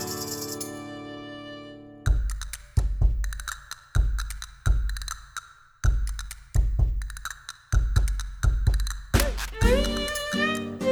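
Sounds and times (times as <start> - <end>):
dance music flourish: 2.1 - 10.7.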